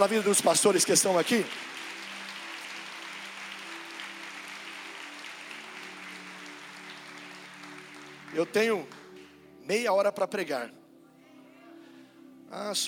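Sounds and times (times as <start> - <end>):
speech: 0.0 - 1.9, 8.4 - 9.0, 9.7 - 10.8, 12.5 - 12.8
audience applause: 0.0 - 9.4.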